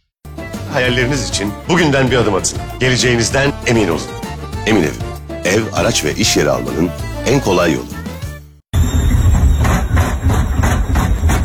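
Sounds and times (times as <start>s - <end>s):
speech: 0.8s - 8.0s
noisy washing machine running: 8.8s - 11.4s.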